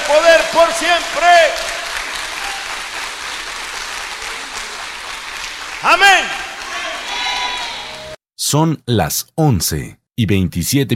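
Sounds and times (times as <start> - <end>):
audience applauding: 0.0 - 8.2
speech: 8.5 - 10.9.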